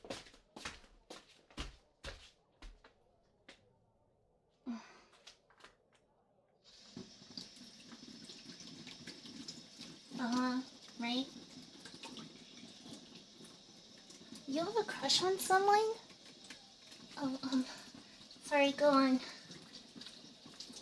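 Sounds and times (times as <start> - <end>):
hands being washed under a running tap: 6.7 - 20.8
speech: 10.2 - 11.4, 14.6 - 16.0, 17.2 - 17.8, 18.5 - 19.3.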